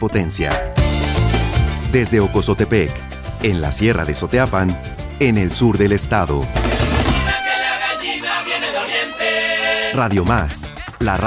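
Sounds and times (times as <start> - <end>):
speech: 0.0 - 0.8, 1.9 - 6.7, 9.9 - 11.2
long-billed thrasher call: 6.6 - 10.0.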